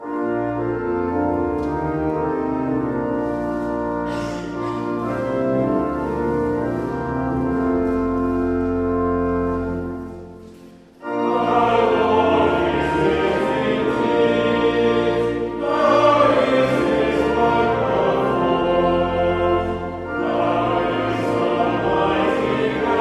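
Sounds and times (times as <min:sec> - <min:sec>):
hymn: 0:00.0 - 0:23.0.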